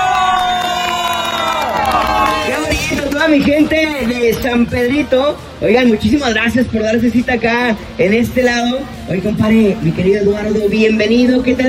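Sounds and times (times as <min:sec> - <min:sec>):
people shouting and whooping: 0:00.0 - 0:02.8
crowd cheering and applauding: 0:00.0 - 0:02.9
speech: 0:03.3 - 0:11.6.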